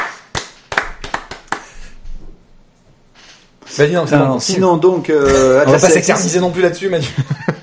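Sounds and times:
audience applause: 0.0s - 1.7s
speech: 3.8s - 7.4s
laughter: 7.0s - 7.6s.

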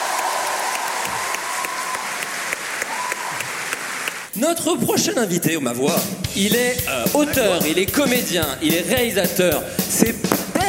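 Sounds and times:
crowd clapping: 0.0s - 4.3s
speech: 4.4s - 10.4s.

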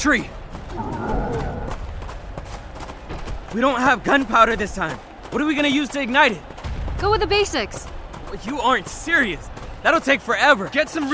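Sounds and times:
speech: 0.0s - 1.6s, 3.5s - 11.1s
horse hooves clopping: 0.0s - 11.1s
horse whinnying: 0.7s - 1.7s.

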